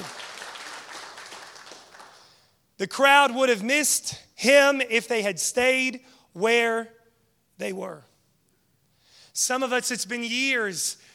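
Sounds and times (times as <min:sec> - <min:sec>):
audience clapping: 0:00.0 - 0:02.5
speech: 0:02.8 - 0:07.0, 0:07.6 - 0:08.1, 0:09.4 - 0:11.1.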